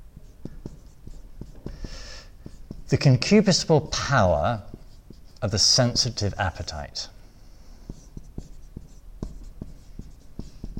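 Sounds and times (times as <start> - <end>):
writing on a board: 0.0 - 6.3, 7.7 - 10.7
speech: 2.9 - 4.7, 5.4 - 7.2.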